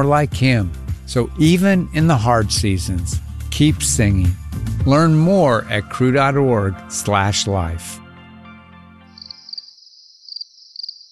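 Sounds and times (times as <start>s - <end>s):
speech: 0.0s - 8.0s
crickets chirping: 9.2s - 11.0s.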